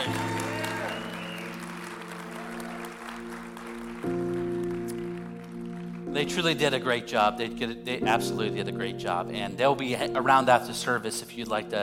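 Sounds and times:
audience applause: 0.0 - 6.1
speech: 6.2 - 11.8.

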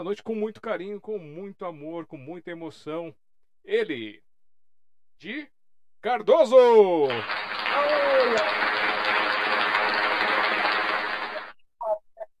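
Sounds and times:
speech: 0.0 - 4.2, 5.2 - 8.9
applause sound effect: 6.9 - 11.6.

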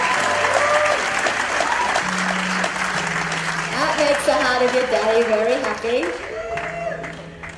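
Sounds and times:
congregation voices cheering and calling out: 0.0 - 2.0, 6.0 - 7.3
church congregation clapping: 0.0 - 7.5
speech: 4.3 - 6.3.

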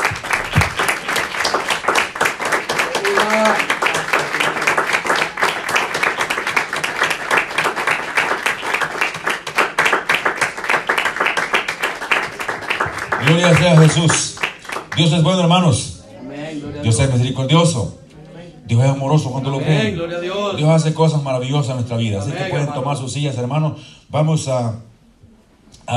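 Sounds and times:
applause: 0.0 - 15.4
speech: 13.4 - 14.3, 15.0 - 15.9, 16.8 - 18.0, 18.7 - 24.9.

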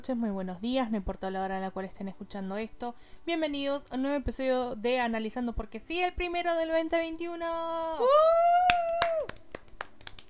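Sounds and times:
speech: 0.0 - 8.8
sustained whoop: 8.0 - 9.4
hand claps: 8.7 - 10.2.

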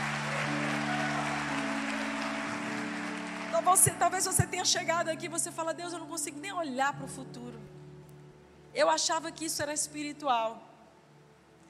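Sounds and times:
audience applause: 0.0 - 4.3
speech: 3.6 - 7.8, 8.7 - 10.7.

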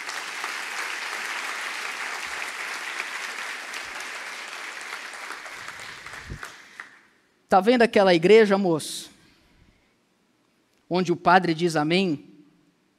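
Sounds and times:
audience applauding: 0.0 - 7.1
speech: 7.5 - 9.1, 10.9 - 12.3.

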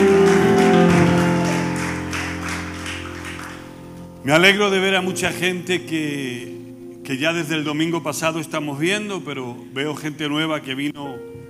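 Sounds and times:
audience clapping loudly: 0.0 - 4.1
sustained held musical tones: 0.0 - 11.4
speech: 4.2 - 11.4.

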